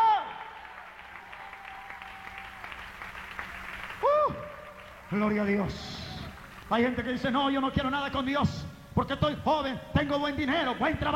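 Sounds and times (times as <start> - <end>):
audience applause: 0.0 - 7.1
speech: 5.1 - 5.9, 6.7 - 11.1.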